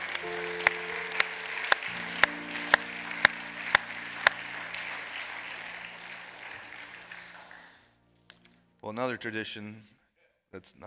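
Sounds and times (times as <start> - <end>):
low keyboard chords: 0.0 - 6.9
audience clapping in unison: 0.0 - 7.9
speech: 8.9 - 10.8.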